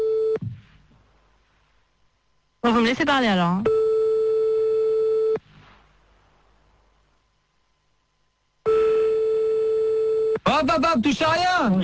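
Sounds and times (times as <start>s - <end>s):
telephone busy signal: 0.0s - 0.4s, 3.7s - 5.4s, 8.7s - 10.4s
speech: 2.6s - 3.8s, 11.0s - 11.8s.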